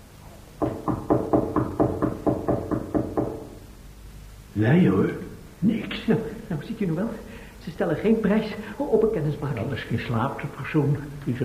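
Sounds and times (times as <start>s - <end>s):
knocking on a locked door: 0.6s - 3.6s
speech: 4.6s - 11.4s.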